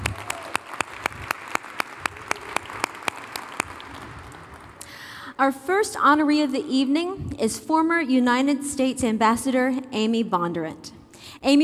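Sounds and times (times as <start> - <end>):
audience applause: 0.0 - 5.2
speech: 5.4 - 11.6.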